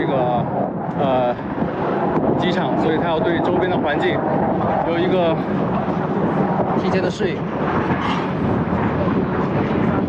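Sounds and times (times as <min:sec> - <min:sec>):
China's second stealth fighter jet passing overhead at an airfield: 0:00.0 - 0:10.0
speech: 0:02.4 - 0:05.9, 0:06.8 - 0:09.0.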